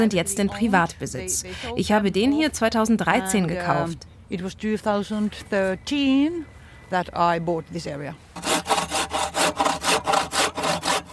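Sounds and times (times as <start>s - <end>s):
speech: 0.0s - 8.5s
sawing wooden boards for a sauna stove: 8.4s - 11.1s.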